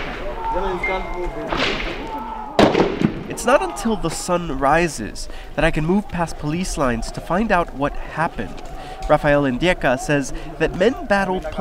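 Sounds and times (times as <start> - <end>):
gunfire during night clashes between demonstrators and security forces: 0.0 - 0.8, 1.4 - 3.4
raised voices: 0.0 - 2.6, 3.3 - 11.5
speech: 0.6 - 11.5.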